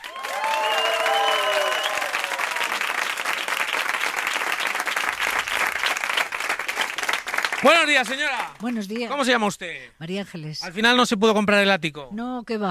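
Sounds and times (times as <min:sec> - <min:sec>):
crowd of penthouse auction bidders applauding and cheering: 0:00.0 - 0:09.1
whistle-like tones: 0:00.6 - 0:02.1
speech: 0:07.6 - 0:12.7.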